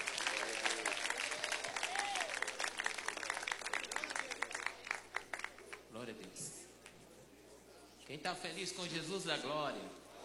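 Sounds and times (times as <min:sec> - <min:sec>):
audience applause: 0:00.0 - 0:05.8
speech: 0:06.1 - 0:06.6, 0:08.1 - 0:10.1.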